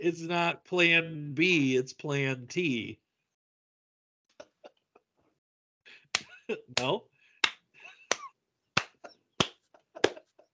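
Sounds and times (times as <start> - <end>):
speech: 0.0 - 3.0, 6.5 - 7.1
person clapping slowly: 6.1 - 10.3.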